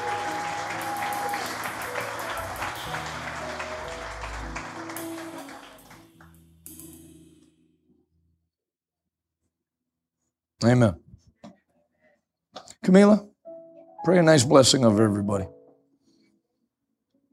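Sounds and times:
audience hand clapping: 0.0 - 6.3
speech: 10.6 - 11.0, 12.9 - 13.3, 14.0 - 15.6.

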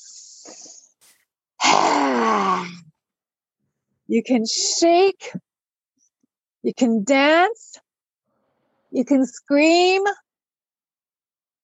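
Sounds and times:
speech: 0.0 - 0.8, 4.1 - 5.5, 6.6 - 7.8, 8.9 - 10.2
person imitating a lioness roar: 1.6 - 2.9.

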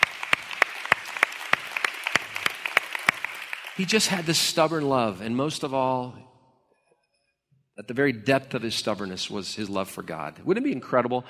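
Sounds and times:
audience applauding: 0.0 - 4.8
speech: 3.8 - 6.3, 7.8 - 11.2.

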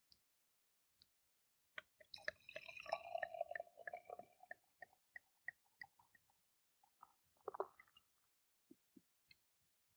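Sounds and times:
clicks and drips: 1.8 - 9.4
beer poured from bottle into glass: 2.1 - 6.0.

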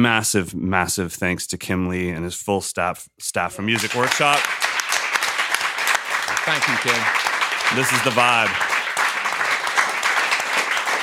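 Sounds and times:
speech: 0.0 - 4.8, 6.4 - 8.7
audience applause: 3.7 - 11.0.

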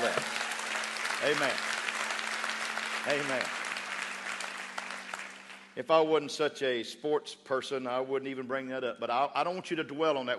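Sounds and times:
audience clapping hands: 0.0 - 6.1
speech: 1.2 - 1.8, 3.0 - 3.6, 5.8 - 10.3.

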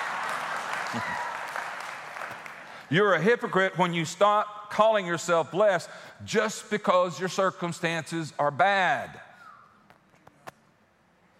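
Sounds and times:
audience clapping: 0.0 - 3.1
speech: 0.9 - 1.3, 2.9 - 9.2.

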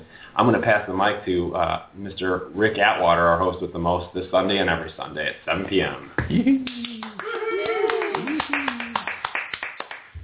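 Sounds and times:
speech: 0.4 - 6.8
rousing audience applause: 6.6 - 10.1.

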